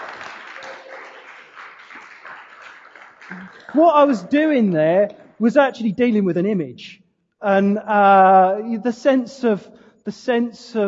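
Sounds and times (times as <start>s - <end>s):
crowd applauding: 0.0s - 4.2s
speech: 3.3s - 10.8s.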